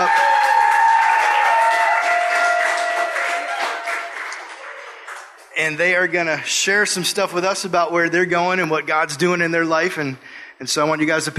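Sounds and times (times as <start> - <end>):
audience applause: 0.0 - 5.6
speech: 5.6 - 11.3.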